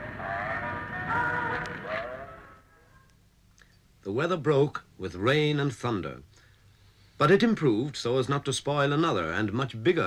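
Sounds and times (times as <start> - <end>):
tinny canned fairground music at a carnival: 0.0 - 2.7
speech: 4.0 - 6.3, 7.2 - 10.0.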